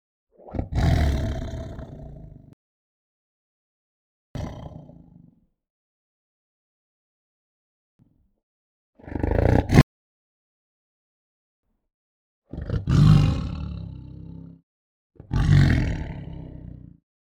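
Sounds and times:
tiger growling and huffing: 0:00.4 - 0:02.6, 0:09.0 - 0:09.8, 0:12.6 - 0:14.4, 0:15.4 - 0:16.9.

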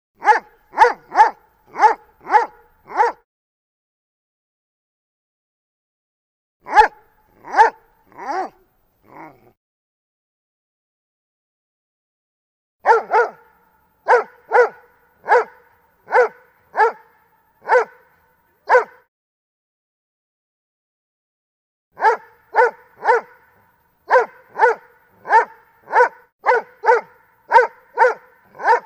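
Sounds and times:
Dobermann barking: 0:00.2 - 0:03.2, 0:06.6 - 0:09.6, 0:12.8 - 0:19.1, 0:22.0 - 0:28.8.

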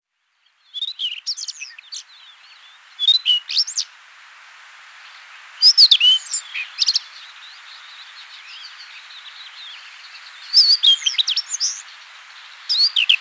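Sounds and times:
Rufous-tailed Scrub Robin singing: 0:00.8 - 0:03.9, 0:05.6 - 0:13.2.

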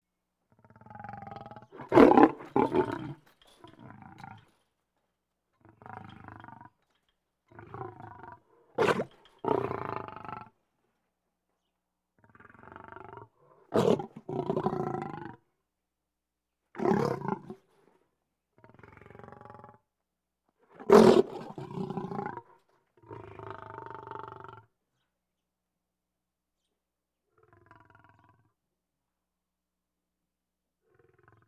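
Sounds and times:
lion growling: 0:00.5 - 0:04.4, 0:07.5 - 0:10.6, 0:12.3 - 0:15.4, 0:16.8 - 0:17.7, 0:20.8 - 0:24.6.

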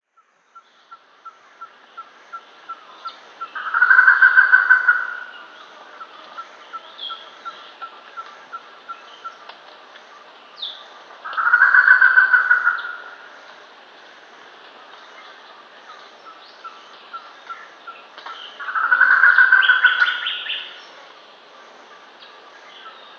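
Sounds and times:
Germain's peacock-pheasant cackling call: 0:00.9 - 0:09.5, 0:11.2 - 0:13.4, 0:15.9 - 0:20.8.

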